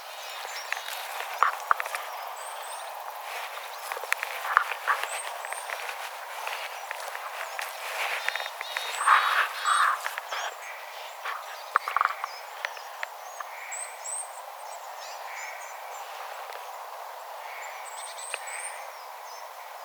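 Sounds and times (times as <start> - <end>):
tit flock calling: 0.0 - 13.9.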